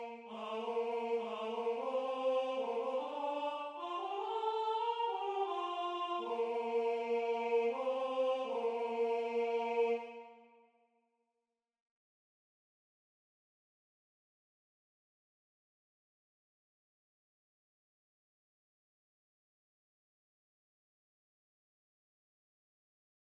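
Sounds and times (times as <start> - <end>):
barbershop soprano singing: 0.0 - 10.3.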